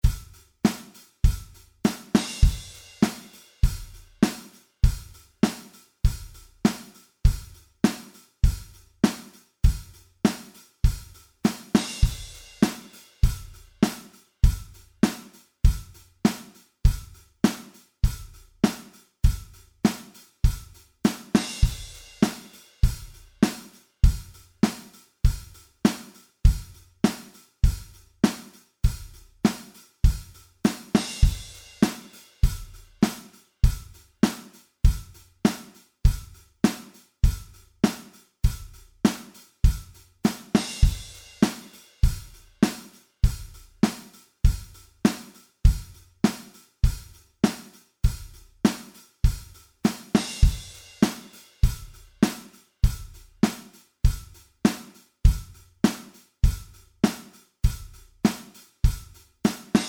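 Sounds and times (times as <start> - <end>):
drums: 0.0 - 59.8.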